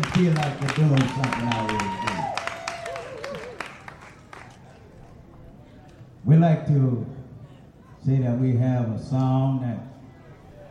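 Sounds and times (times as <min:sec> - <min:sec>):
audience clapping hands: 0:00.0 - 0:04.8
low crowd murmur: 0:00.0 - 0:08.6, 0:09.8 - 0:10.6
speech: 0:00.2 - 0:02.0, 0:06.4 - 0:07.2, 0:08.0 - 0:09.9.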